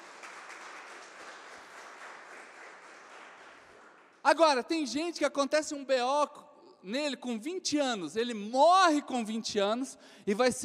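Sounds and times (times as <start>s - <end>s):
audience applause: 0.0s - 4.2s
speech: 4.3s - 10.6s.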